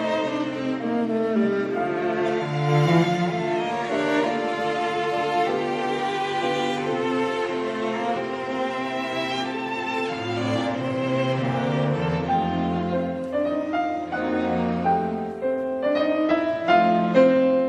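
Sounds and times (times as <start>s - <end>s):
piano quintet playing: 0.0s - 17.6s.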